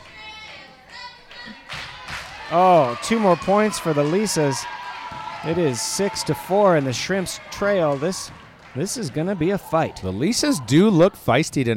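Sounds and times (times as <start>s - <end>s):
crowd cheering: 0.0s - 11.3s
clapping: 0.4s - 9.4s
speech: 2.5s - 4.8s, 5.4s - 11.7s.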